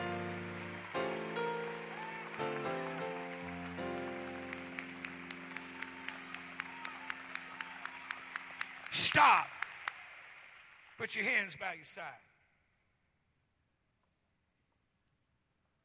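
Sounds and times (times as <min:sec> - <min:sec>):
sustained organ-like chords: 0:00.0 - 0:07.4
crowd clapping: 0:00.0 - 0:11.6
speech: 0:09.2 - 0:09.6, 0:11.0 - 0:12.3.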